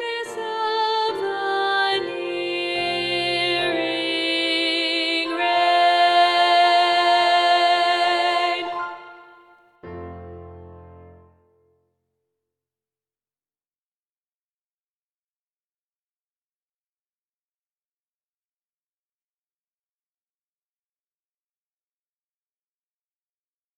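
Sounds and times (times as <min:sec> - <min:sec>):
SSA choir with predominant alto voices singing: 0:00.0 - 0:09.5.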